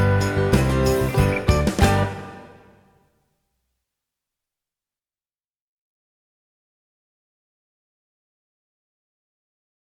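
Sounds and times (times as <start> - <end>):
rock version of a Christmas song: 0.0 - 3.0.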